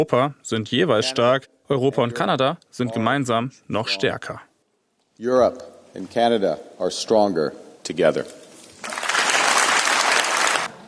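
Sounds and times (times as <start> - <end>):
speech: 0.0 - 4.5, 5.2 - 9.0
applause for Mark Carney in the European Parliament in Strasbourg: 8.8 - 10.7.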